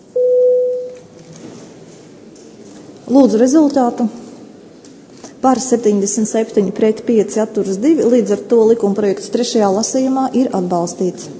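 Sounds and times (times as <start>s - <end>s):
parliament voting signal electronic tone: 0.2s - 1.0s
speech: 3.1s - 4.2s, 5.4s - 11.3s.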